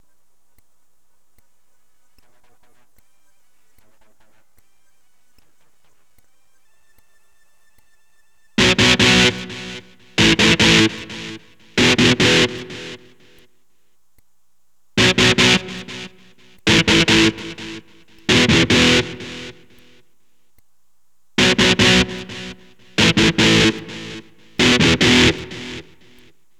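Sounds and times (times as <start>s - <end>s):
electric guitar power chord: 8.6s - 13.4s, 15.0s - 20.0s, 21.4s - 26.3s.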